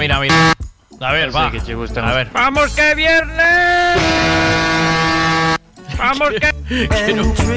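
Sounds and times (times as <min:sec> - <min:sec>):
speech: 0:00.0 - 0:04.8, 0:06.0 - 0:07.5
loud horn blast: 0:00.3 - 0:00.6, 0:03.5 - 0:05.6.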